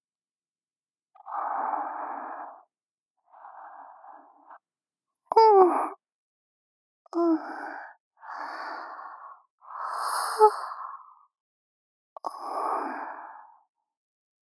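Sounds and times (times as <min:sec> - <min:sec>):
younger sister breathing in sleep, ASMR: 0:01.2 - 0:04.6, 0:07.4 - 0:11.2, 0:12.2 - 0:13.7.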